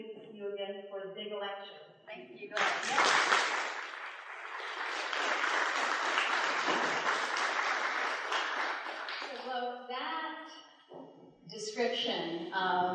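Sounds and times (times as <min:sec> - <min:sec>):
speech: 0:00.5 - 0:03.8, 0:09.5 - 0:12.9
audience applause: 0:02.6 - 0:09.4.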